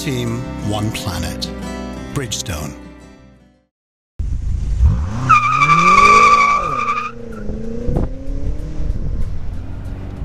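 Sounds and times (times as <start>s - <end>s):
speech: 0.0s - 2.8s
BMW M6 convertible engine roaring during a launch control burnout: 4.2s - 10.2s.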